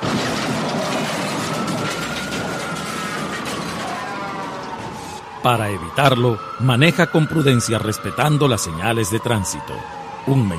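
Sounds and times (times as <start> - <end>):
car crash on the road: 0.0 - 5.2
speech: 5.4 - 10.5.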